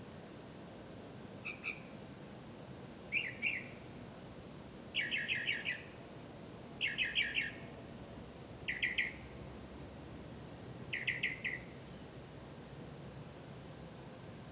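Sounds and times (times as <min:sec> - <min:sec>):
bird chirps: 0:01.4 - 0:01.9, 0:03.1 - 0:03.8, 0:05.0 - 0:05.9, 0:06.8 - 0:07.7, 0:08.7 - 0:09.3, 0:10.9 - 0:12.1.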